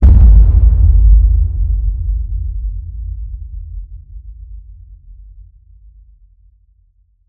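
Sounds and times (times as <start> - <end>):
designed cinematic boom hits: 0.0 - 3.5.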